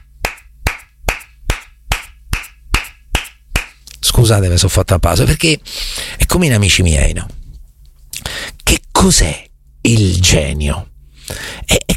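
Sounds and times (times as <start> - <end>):
one person clapping hands: 0.2 - 3.8
speech: 4.1 - 7.4, 9.0 - 11.9.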